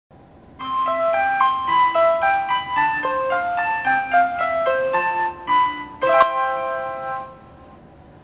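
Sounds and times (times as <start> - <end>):
chime: 0.6 - 7.3.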